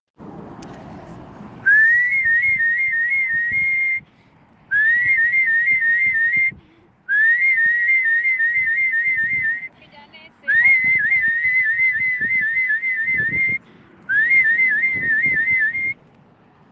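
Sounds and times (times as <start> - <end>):
whistling: 1.6 - 4.1, 4.7 - 9.8, 10.5 - 16.0.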